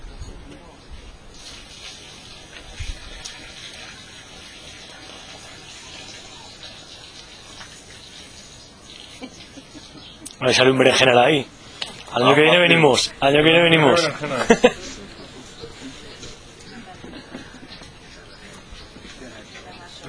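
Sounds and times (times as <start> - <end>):
water rinsing seeds in a container during seed extraction: 1.3 - 9.5
laughter: 9.0 - 10.4, 13.8 - 19.5
speech: 10.4 - 11.6, 12.2 - 14.9.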